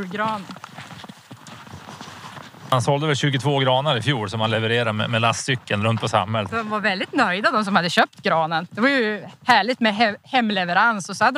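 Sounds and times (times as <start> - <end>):
speech: 0.0 - 0.6, 2.7 - 11.3
footsteps creaking and crunching through snow: 0.0 - 2.8.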